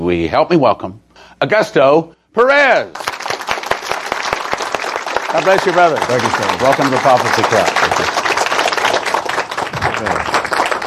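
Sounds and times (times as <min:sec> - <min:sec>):
speech: 0:00.1 - 0:03.1, 0:05.3 - 0:08.2
audience applause and clapping: 0:03.0 - 0:10.8.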